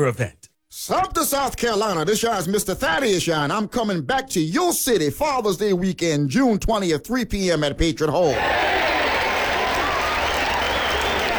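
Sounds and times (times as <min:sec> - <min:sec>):
speech: 0:00.0 - 0:08.8
audience clapping: 0:08.3 - 0:11.3.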